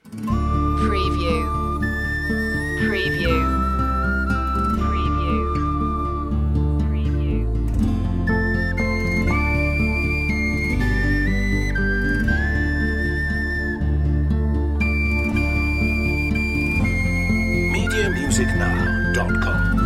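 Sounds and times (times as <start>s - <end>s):
high flute: 0.2s - 19.8s.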